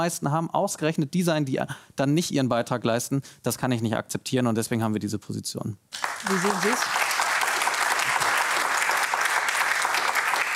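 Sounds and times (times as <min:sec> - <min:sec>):
speech: 0:00.0 - 0:07.0
audience applause: 0:06.0 - 0:10.5.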